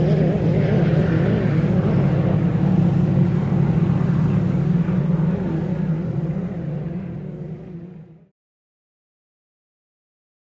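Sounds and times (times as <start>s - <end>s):
inboard and outboard motorboats passing by: 0.0s - 8.3s.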